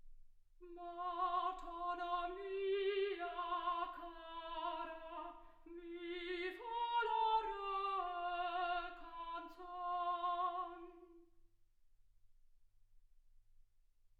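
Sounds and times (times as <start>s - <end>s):
soprano singing: 0.6s - 11.3s.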